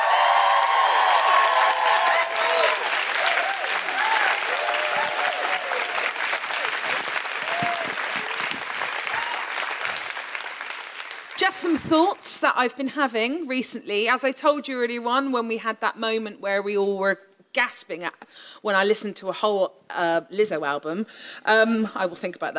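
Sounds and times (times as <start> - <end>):
audience woohooing: 0.0 - 9.9
audience applause: 0.0 - 11.7
speech: 11.4 - 22.5.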